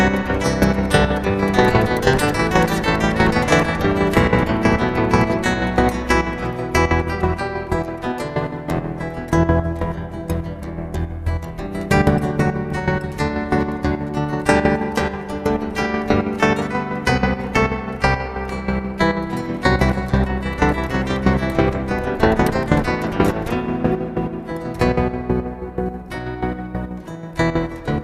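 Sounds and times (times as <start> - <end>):
meditative guitar improvisation: 0.0 - 28.0.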